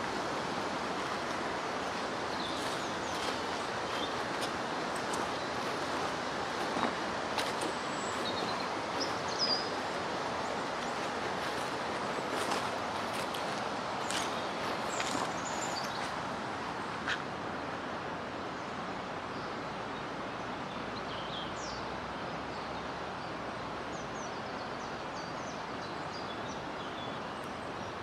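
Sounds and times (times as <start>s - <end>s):
waterside woodland ambience: 0.0s - 28.0s.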